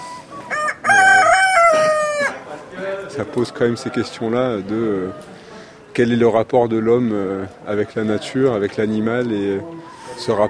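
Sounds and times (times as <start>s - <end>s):
chickens clucking: 0.0s - 5.9s, 7.1s - 10.4s
rooster crowing: 0.4s - 2.4s
speech: 3.2s - 5.4s, 6.0s - 10.4s.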